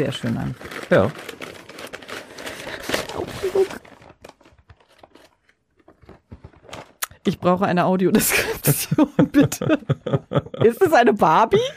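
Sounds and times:
speech: 0.0 - 1.5, 7.3 - 11.7
wrapping paper on a gift package tearing: 0.0 - 7.1
rustling and handling noises: 0.0 - 7.6
laughter: 8.2 - 11.7.

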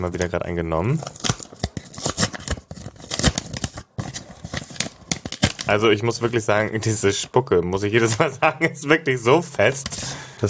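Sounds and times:
speech: 0.0 - 1.4, 5.7 - 10.4
envelope being torn open: 1.0 - 5.7.

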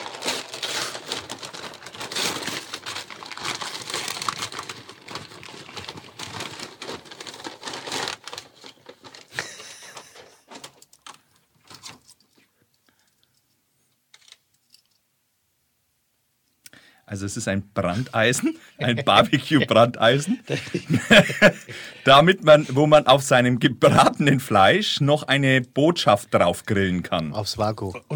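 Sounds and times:
wrapping paper crinkling and tearing as a gift is unwrapped: 0.0 - 12.3, 18.9 - 19.8
laughter: 9.4 - 10.4, 17.9 - 22.8
speech: 17.1 - 28.1.

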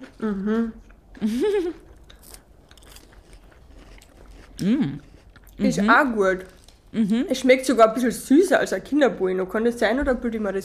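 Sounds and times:
speech: 0.0 - 1.9, 4.6 - 10.6
chewing: 0.0 - 5.8
crunching and biting a biscuit wafer bar: 1.9 - 5.6.

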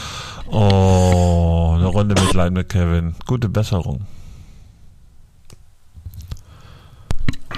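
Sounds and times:
speech: 0.5 - 0.9, 1.9 - 4.2
coughing fit: 1.9 - 2.5.

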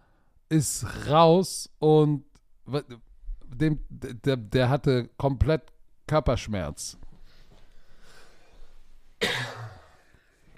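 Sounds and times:
speech: 0.5 - 7.0
sneeze or cough: 9.2 - 10.1.

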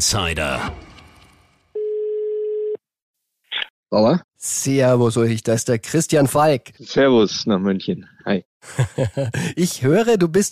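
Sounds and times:
speech: 0.0 - 0.9, 3.9 - 10.5
ringback tone of an outgoing phone call: 1.8 - 2.8
laughter: 8.6 - 9.6.

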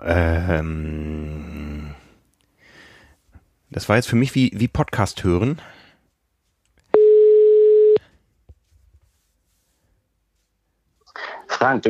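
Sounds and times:
speech: 0.0 - 1.4, 3.7 - 5.8
telephone tone: 6.9 - 8.0.

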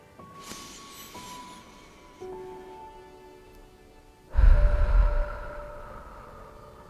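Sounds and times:
soft sustained tonal background: 0.8 - 6.8
deep breathing in through nose, out through mouth: 4.3 - 6.8.

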